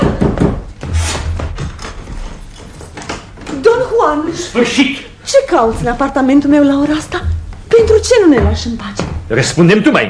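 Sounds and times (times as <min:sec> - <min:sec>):
father knocking on a wooden door: 0:00.0 - 0:02.0, 0:05.6 - 0:09.4
speech: 0:04.0 - 0:10.0.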